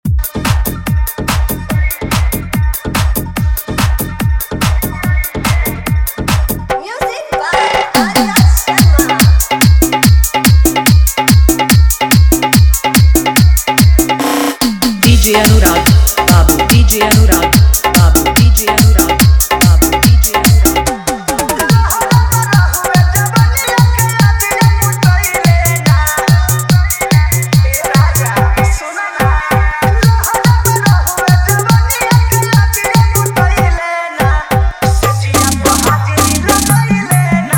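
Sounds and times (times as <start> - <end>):
Bhojpuri dholak bass dance mix: 0.0 - 37.5.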